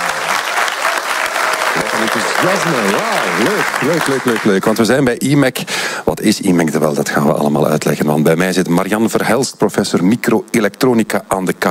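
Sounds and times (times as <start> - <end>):
live audience applauding: 0.0 - 5.1
speech: 2.1 - 11.6.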